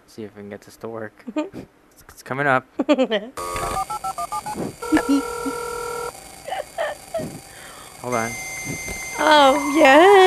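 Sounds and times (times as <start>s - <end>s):
speech: 0.2s - 5.6s, 8.0s - 10.2s
dial-up modem connecting: 3.4s - 10.2s.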